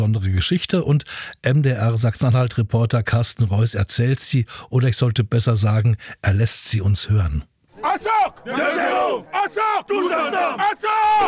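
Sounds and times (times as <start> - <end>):
speech: 0.0 - 11.2
veterans' football team from Cameroon chanting a battle cry on a village pitch in Öhrenfeld: 7.7 - 11.2.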